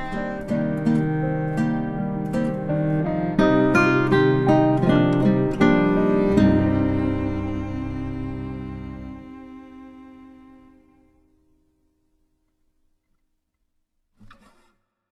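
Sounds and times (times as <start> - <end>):
piano music: 0.0 - 11.4.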